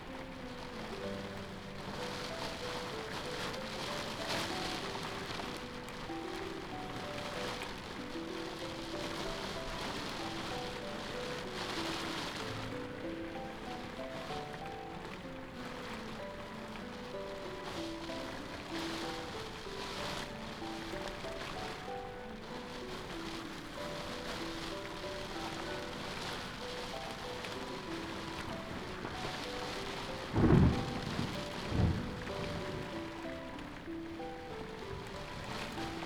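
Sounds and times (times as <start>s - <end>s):
rain heard from inside a house: 0.0s - 36.0s
thunder heard from inside a house: 30.3s - 32.9s.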